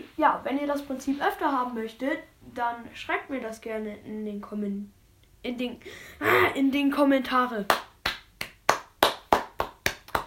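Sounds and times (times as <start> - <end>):
speech: 0.2 - 7.9
hand claps: 7.7 - 10.2.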